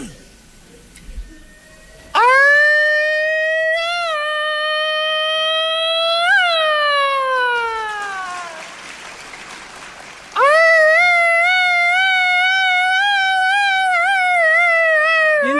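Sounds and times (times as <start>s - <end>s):
voice wailing in imitation of a police siren: 2.2s - 8.6s, 10.4s - 15.5s.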